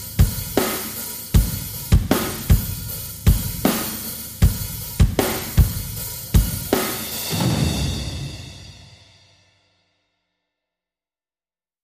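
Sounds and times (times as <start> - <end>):
drums only mix: 0.0 - 9.2.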